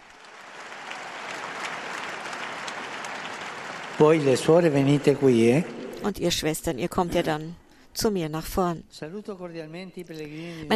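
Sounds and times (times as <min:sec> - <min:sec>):
crowd applause: 0:00.0 - 0:06.0
speech: 0:04.0 - 0:10.7.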